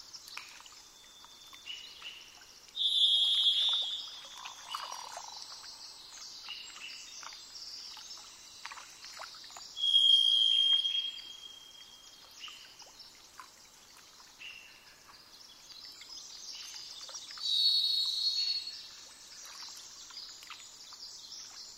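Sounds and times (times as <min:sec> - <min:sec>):
varied thrush ringing whistles: 0:02.8 - 0:05.2, 0:09.8 - 0:11.7.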